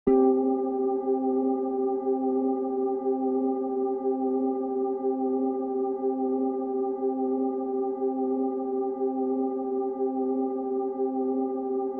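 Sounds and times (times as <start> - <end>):
ambient music: 0.1 - 11.9.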